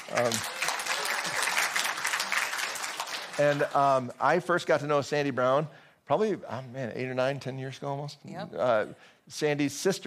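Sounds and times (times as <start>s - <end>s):
audience applauding to welcome a speaker: 0.0s - 4.1s
speech: 0.1s - 0.6s, 3.4s - 10.0s.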